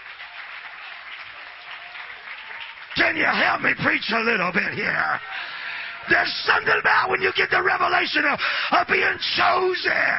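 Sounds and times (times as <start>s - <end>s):
audience clapping: 0.0s - 6.3s
speech: 3.0s - 10.1s.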